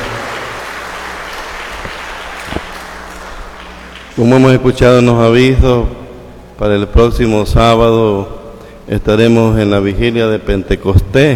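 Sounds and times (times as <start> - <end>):
audience applause: 0.0 - 4.2
speech: 4.2 - 6.0, 6.6 - 11.3.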